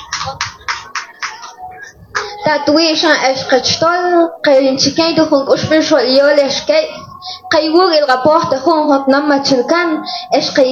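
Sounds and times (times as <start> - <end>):
audience applause: 0.0 - 1.6
speech: 0.2 - 0.5, 2.4 - 10.6.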